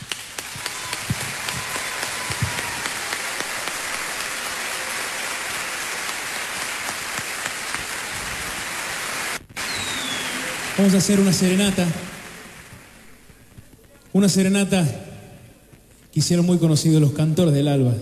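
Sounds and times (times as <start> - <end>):
audience applause: 0.0 - 13.5
speech: 10.8 - 12.1, 14.2 - 15.1, 16.2 - 18.0.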